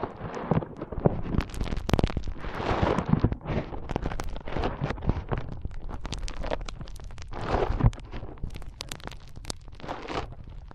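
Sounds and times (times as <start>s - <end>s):
foam squeezed and rubbed, crackling and popping: 0.0s - 10.7s.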